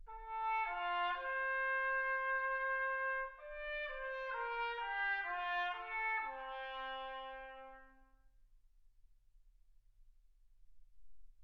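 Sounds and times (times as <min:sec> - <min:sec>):
trumpet: 0:00.0 - 0:08.3.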